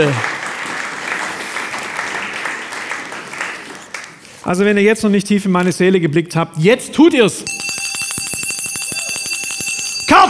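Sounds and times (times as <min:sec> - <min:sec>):
speech: 0:00.0 - 0:00.3, 0:04.5 - 0:07.6
audience applause: 0:00.0 - 0:04.2.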